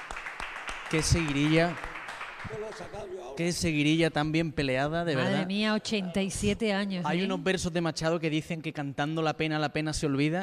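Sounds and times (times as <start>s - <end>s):
sparse hand claps: 0.0s - 3.2s
speech: 0.9s - 10.4s.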